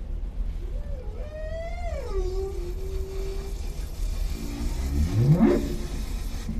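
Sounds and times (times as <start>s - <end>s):
humpback whale moaning in long gliding tones: 0.8s - 6.0s.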